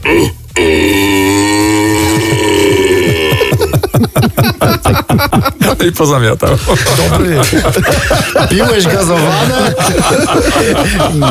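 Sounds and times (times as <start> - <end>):
red deer stag roar imitated with cupped hands: 0.0 - 3.6
laughter: 2.0 - 11.3
speech: 5.4 - 11.3.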